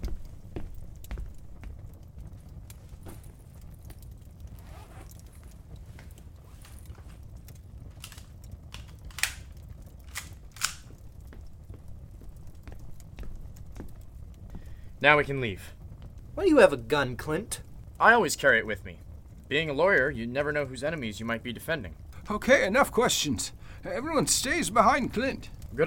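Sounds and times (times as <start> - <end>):
hiss: 0.0 - 25.8
rustling in a bag: 4.4 - 8.4
speech: 15.0 - 15.8, 16.4 - 25.8.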